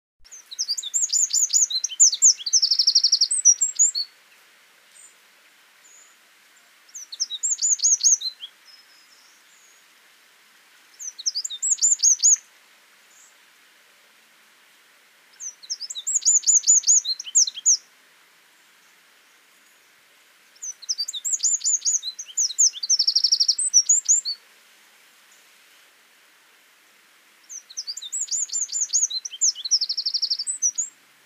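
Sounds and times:
wren song: 0.2 - 9.9, 10.9 - 12.5, 15.3 - 24.4, 27.4 - 31.2.

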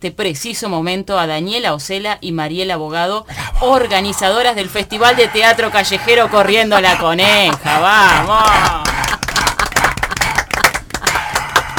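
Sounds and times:
speech: 0.0 - 8.9
laughter: 5.0 - 11.7
audience applause: 7.5 - 11.7.

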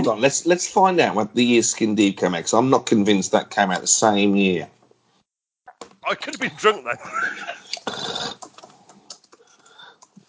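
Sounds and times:
speech: 0.0 - 4.8, 6.0 - 8.2
laughter: 6.1 - 7.8
typing on a computer keyboard: 8.3 - 10.2.

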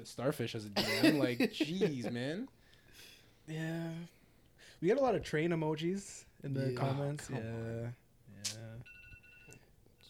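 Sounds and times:
speech: 0.0 - 9.0
phone alarm ringing: 8.8 - 10.0.

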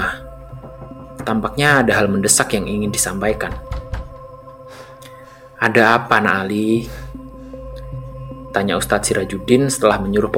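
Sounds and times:
knocking on a wooden house door: 0.4 - 2.1, 3.3 - 4.4
speech: 1.3 - 3.8, 5.6 - 7.0, 8.5 - 10.3.

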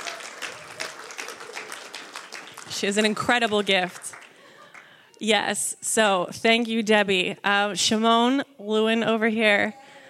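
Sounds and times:
audience applause: 0.0 - 5.0
speech: 2.7 - 4.2, 5.2 - 9.8.

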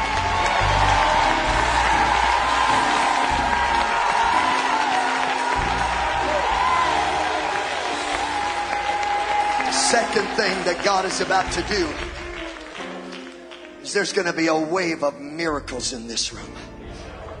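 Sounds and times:
crowd cheering and whooping: 0.0 - 12.3
audience applause: 0.0 - 14.0
speech: 10.0 - 12.2, 13.9 - 16.7.

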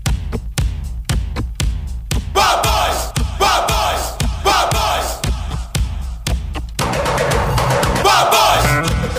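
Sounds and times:
pounding drum beat of podcast theme jingle: 0.0 - 9.1
crowd-like shouts and chanting in theme jingle: 2.3 - 6.1, 8.0 - 8.9.

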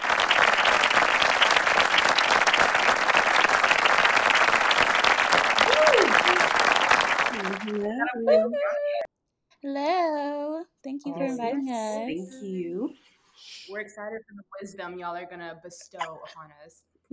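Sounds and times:
audience clapping: 0.0 - 8.4
speech: 7.7 - 8.9, 9.6 - 17.1.

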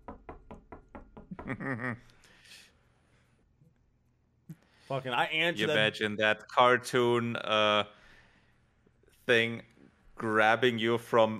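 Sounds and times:
knocking on a door: 0.0 - 1.6
speech: 1.5 - 2.7, 4.9 - 8.0, 9.3 - 11.3.

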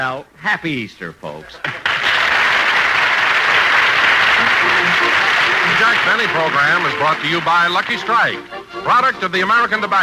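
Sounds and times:
speech: 0.0 - 1.8, 4.6 - 10.0
studio audience applause: 1.6 - 8.5.

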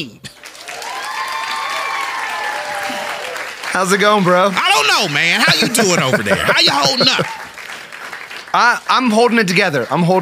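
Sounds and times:
speech: 0.0 - 0.2, 3.8 - 7.4, 8.5 - 10.1
audience clapping to welcome a co-host: 0.3 - 10.1
laughter: 4.7 - 7.6.

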